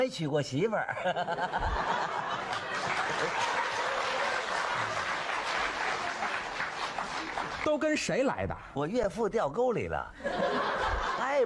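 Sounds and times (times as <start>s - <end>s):
speech: 0.0s - 2.2s, 7.6s - 10.6s, 11.2s - 11.4s
audience laughter and chuckles: 1.0s - 7.6s, 10.2s - 11.4s
audience applause: 2.0s - 8.1s.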